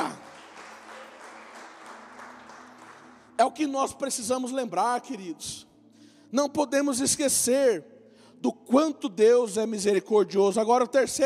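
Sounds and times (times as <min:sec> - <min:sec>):
audience applauding: 0:00.0 - 0:03.4
speech: 0:03.4 - 0:05.7, 0:06.3 - 0:11.2.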